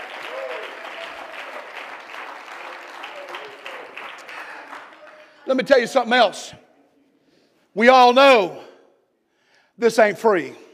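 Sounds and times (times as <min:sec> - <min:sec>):
audience clapping: 0:00.0 - 0:05.8
speech: 0:05.5 - 0:06.6, 0:07.7 - 0:08.7, 0:09.8 - 0:10.6.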